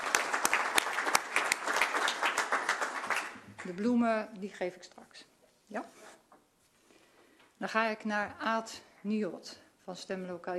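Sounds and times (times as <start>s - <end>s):
audience applause: 0.0s - 3.7s
speech: 3.7s - 6.1s, 7.6s - 10.5s.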